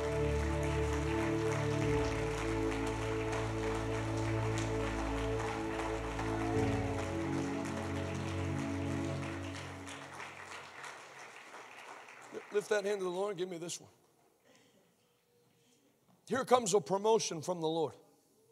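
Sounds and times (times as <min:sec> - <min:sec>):
sustained keyboard or organ chords: 0:00.0 - 0:10.2
audience clapping: 0:00.0 - 0:13.7
speech: 0:12.6 - 0:14.0, 0:16.3 - 0:18.0.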